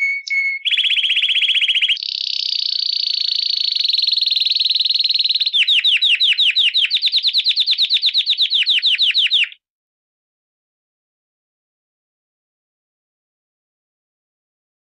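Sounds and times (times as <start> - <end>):
canary giving rattling trill and high pulsed roll: 0.0 - 9.6.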